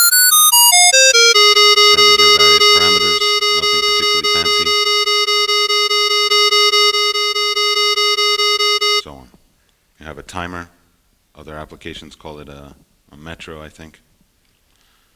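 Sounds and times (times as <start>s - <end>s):
pulsing synthesized wavetable instrument tone: 0.0s - 9.0s
speech: 11.8s - 14.1s.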